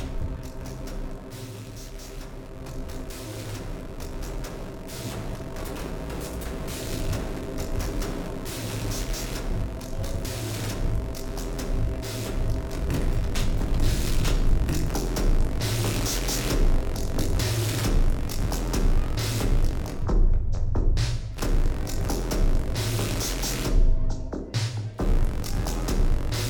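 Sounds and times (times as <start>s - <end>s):
noise: 0.0s - 26.4s.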